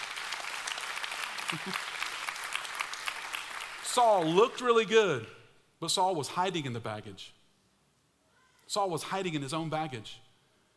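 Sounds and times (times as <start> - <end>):
audience applause: 0.0 - 4.6
laughter: 1.4 - 2.0
speech: 1.5 - 2.0, 4.0 - 7.4, 8.7 - 10.2.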